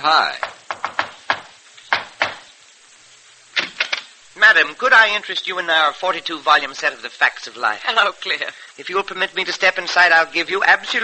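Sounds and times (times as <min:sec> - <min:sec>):
speech: 0:00.0 - 0:00.5, 0:04.5 - 0:11.0
knocking on a door: 0:00.4 - 0:02.5.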